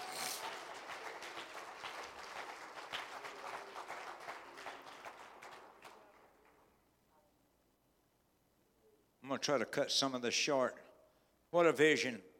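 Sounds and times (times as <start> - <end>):
audience clapping hands in praise: 0.0 - 6.2
speech: 9.3 - 10.8, 11.5 - 12.3.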